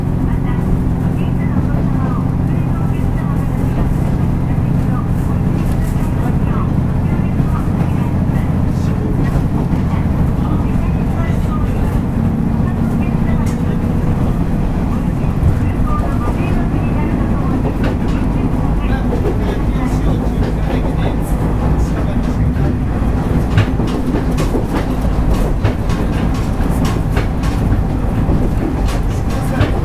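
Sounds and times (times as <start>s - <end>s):
faint voices: 0.0s - 29.8s
local train on the Wakamatsu Line rumbling: 0.0s - 29.8s
clicks and rattles: 9.2s - 29.8s.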